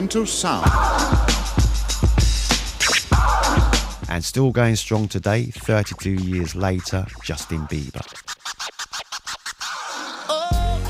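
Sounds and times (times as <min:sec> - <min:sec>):
speech: 0:00.0 - 0:01.4, 0:04.1 - 0:08.2
DJ scratching a record sample: 0:02.4 - 0:10.4.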